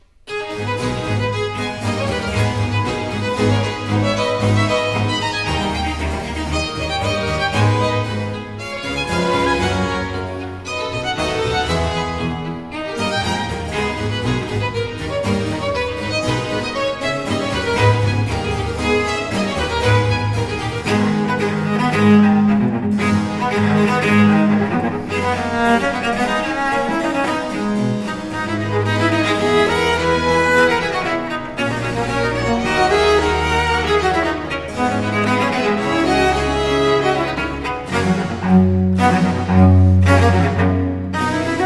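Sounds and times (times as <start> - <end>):
cello concerto in A minor, allegro: 0.0 - 41.6.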